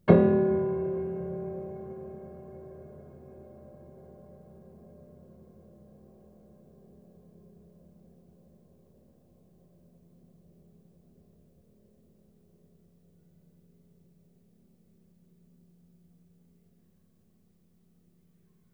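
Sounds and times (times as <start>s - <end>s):
low piano harmonics with pedal: 0.0s - 4.8s.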